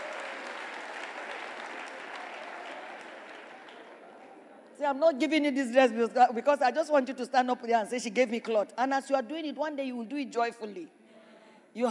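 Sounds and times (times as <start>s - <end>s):
audience clapping: 0.0s - 4.4s
speech: 4.8s - 11.0s.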